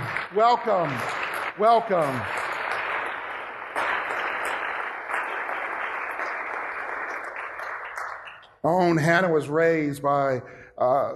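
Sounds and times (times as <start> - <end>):
church congregation applauding to welcome guests: 0.0 - 9.1
speech: 0.3 - 2.4, 8.6 - 11.1.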